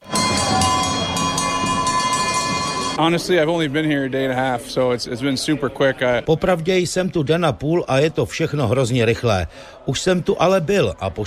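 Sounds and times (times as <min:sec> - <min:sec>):
cowbells ringing in a hockey stadium: 0:00.0 - 0:03.2
speech: 0:03.0 - 0:11.2.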